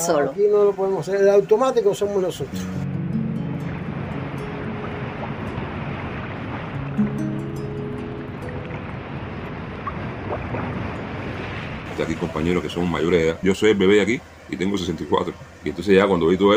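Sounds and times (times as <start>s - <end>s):
speech: 0.0s - 2.9s, 12.0s - 16.5s
63-metre boat with a 540-horsepower engine rumbling at sea: 0.0s - 16.5s
wash of water at sea: 1.4s - 16.5s
wind noise at sea: 2.7s - 13.5s.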